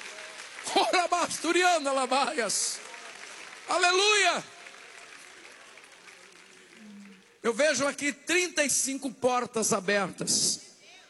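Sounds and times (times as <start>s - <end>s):
congregation clapping hands during a Portuguese-language church service: 0.0s - 8.1s
speech: 0.7s - 2.9s, 3.7s - 4.5s, 7.4s - 10.7s.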